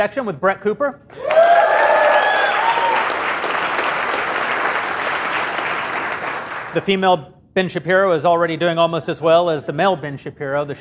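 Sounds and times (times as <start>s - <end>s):
speech: 0.0s - 1.6s, 6.8s - 10.7s
crowd clapping: 1.1s - 6.8s
whistles and whoops: 1.2s - 3.2s.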